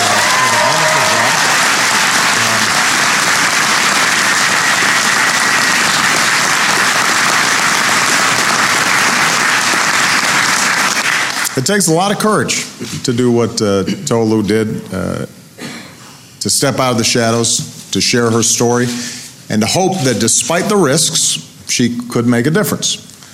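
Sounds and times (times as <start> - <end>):
audience applause: 0.0 - 11.6
speech: 11.7 - 15.4, 16.4 - 23.1.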